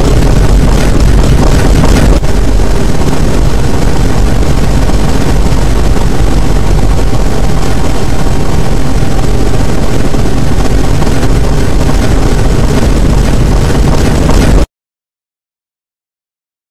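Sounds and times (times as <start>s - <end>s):
distorted deep boom: 0.0s - 14.7s.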